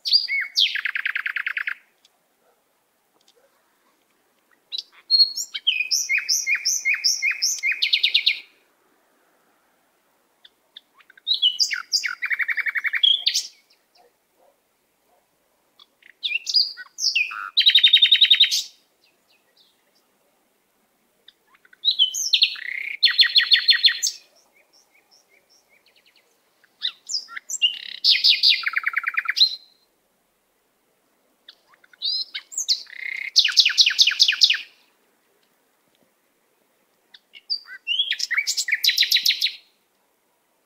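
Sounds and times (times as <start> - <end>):
natural bird sounds: 0.0 - 2.6, 4.5 - 8.6, 10.4 - 14.5, 15.8 - 20.1, 21.2 - 29.9, 31.5 - 34.9, 37.1 - 39.7.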